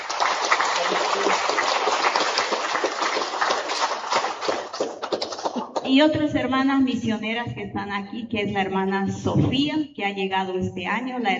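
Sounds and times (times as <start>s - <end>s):
audience applause: 0.0s - 5.8s
speech: 5.9s - 11.3s.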